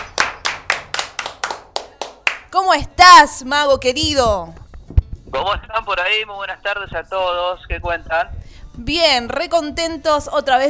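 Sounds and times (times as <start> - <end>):
sharp crisp hand claps: 0.0 - 2.5
speech: 2.5 - 4.6, 5.3 - 10.6.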